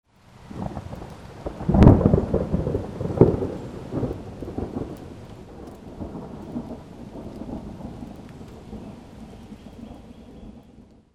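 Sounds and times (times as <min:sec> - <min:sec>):
rain: 0:00.0 - 0:11.1.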